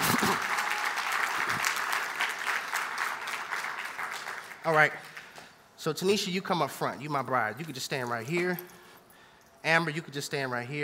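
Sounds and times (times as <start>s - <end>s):
audience clapping for the choir: 0.0s - 5.5s
speech: 4.6s - 5.1s, 5.8s - 8.8s, 9.6s - 10.8s.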